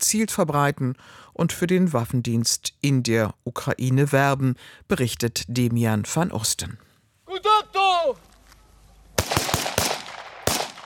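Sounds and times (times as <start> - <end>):
speech: 0.1 - 8.3
person shouting at a military training ground: 7.3 - 8.2
gunfire at a military training ground: 9.2 - 10.8.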